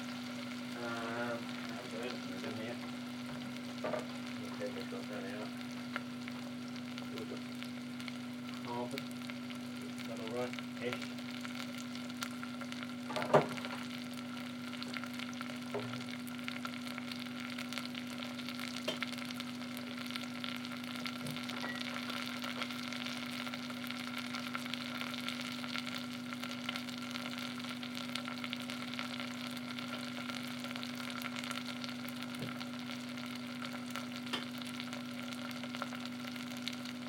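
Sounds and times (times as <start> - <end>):
potatoes frying in a pan: 0.0 - 37.0.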